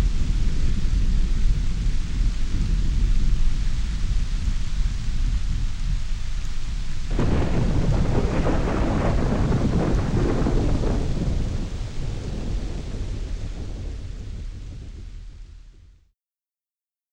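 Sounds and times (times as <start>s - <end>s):
rainy thunderstorm ambience: 0.0s - 16.0s.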